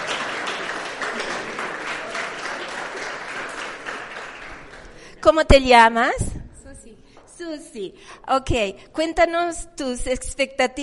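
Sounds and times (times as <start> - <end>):
audience applause: 0.0 - 5.0
speech: 5.3 - 6.3, 7.4 - 10.8.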